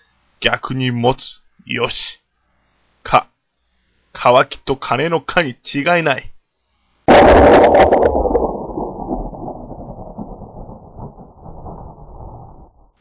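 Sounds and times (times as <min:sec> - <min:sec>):
speech: 0:00.4 - 0:02.2, 0:03.0 - 0:03.3, 0:04.2 - 0:06.3, 0:07.1 - 0:08.2
thunder clap: 0:07.1 - 0:12.9.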